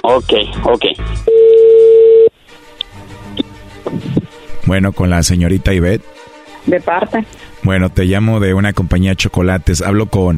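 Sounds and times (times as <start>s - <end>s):
speech: 0.0s - 1.3s, 4.7s - 10.3s
telephone dial tone: 1.3s - 2.3s.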